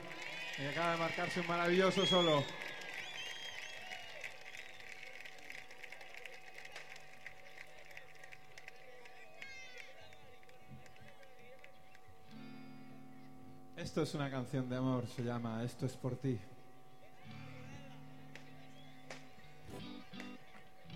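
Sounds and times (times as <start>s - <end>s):
audience applause: 0.0s - 12.0s
speech: 0.6s - 2.6s, 14.0s - 16.6s.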